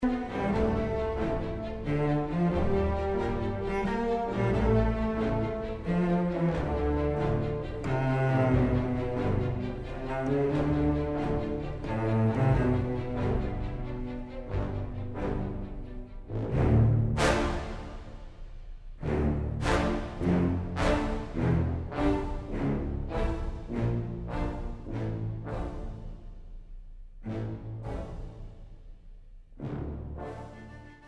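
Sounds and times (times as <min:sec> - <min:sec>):
orchestral music: 0:00.0 - 0:31.0.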